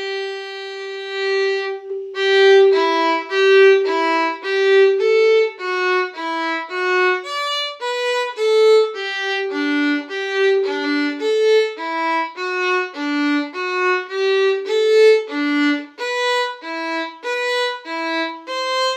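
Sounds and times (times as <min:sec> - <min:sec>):
violin playing: 0:00.0 - 0:18.9.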